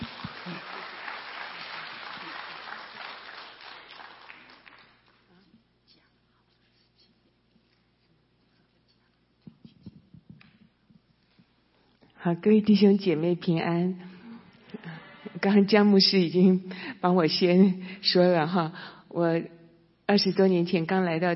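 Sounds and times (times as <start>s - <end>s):
audience applause: 0.0s - 5.2s
speech: 12.2s - 14.1s, 15.4s - 21.3s.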